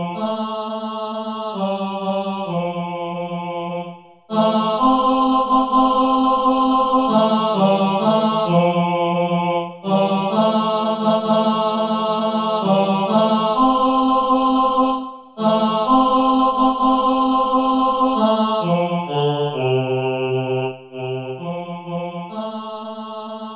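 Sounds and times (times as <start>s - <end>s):
tenor singing: 0.0s - 23.5s.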